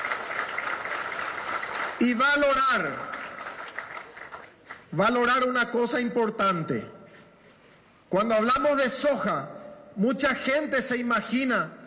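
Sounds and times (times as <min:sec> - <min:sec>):
audience applause: 0:00.0 - 0:04.9
speech: 0:02.0 - 0:03.2, 0:04.9 - 0:07.0, 0:08.1 - 0:11.8.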